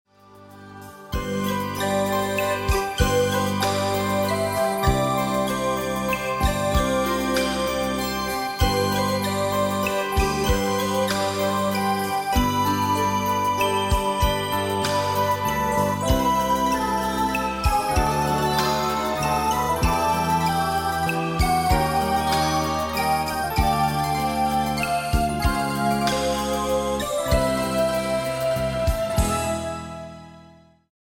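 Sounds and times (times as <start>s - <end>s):
children's song karaoke: 0.7s - 29.7s.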